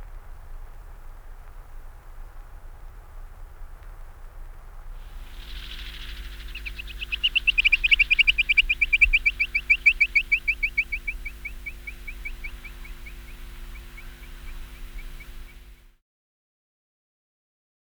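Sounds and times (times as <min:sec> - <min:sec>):
dotterel calling: 0:05.0 - 0:15.9.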